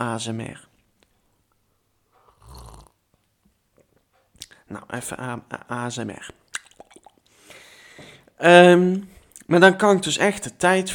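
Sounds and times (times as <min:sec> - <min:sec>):
speech: 0:00.0 - 0:00.7, 0:04.7 - 0:06.4, 0:08.4 - 0:10.9
swallowing: 0:02.2 - 0:03.0, 0:06.5 - 0:07.4
sipping a drink: 0:06.5 - 0:07.4.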